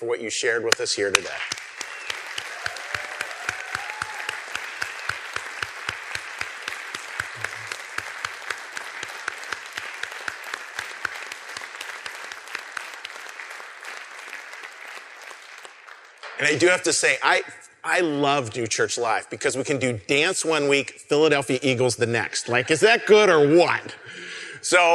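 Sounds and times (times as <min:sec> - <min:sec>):
speech: 0:00.0 - 0:01.7, 0:16.4 - 0:24.9
audience applause: 0:01.3 - 0:16.2.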